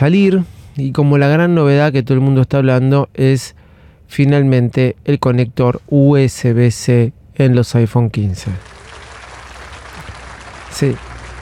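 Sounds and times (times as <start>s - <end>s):
speech: 0.0s - 8.8s, 10.7s - 11.1s
speaker clapping hands: 8.6s - 11.4s.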